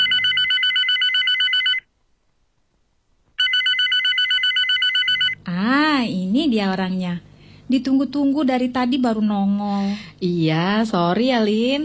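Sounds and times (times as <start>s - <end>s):
telephone ringing: 0.0s - 1.9s, 3.4s - 5.4s
speech: 6.4s - 11.8s.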